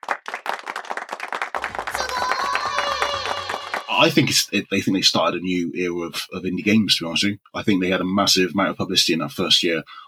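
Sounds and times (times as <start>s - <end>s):
round of applause sound effect: 0.0s - 4.4s
crowd noise: 1.6s - 4.4s
speech: 4.0s - 10.0s.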